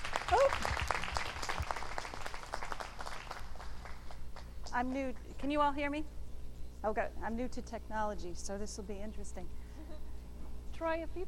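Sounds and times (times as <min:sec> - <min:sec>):
audience applause welcoming a speaker: 0:00.0 - 0:04.5
speech: 0:00.3 - 0:00.9, 0:04.8 - 0:06.2, 0:06.8 - 0:09.6, 0:10.8 - 0:11.2.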